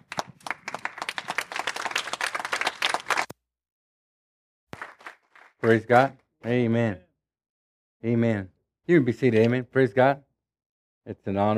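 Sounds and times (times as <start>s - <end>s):
church congregation applauding to welcome a pastor: 0.0s - 3.3s, 4.8s - 6.1s
speech: 5.6s - 7.1s, 8.0s - 10.3s, 11.1s - 11.5s.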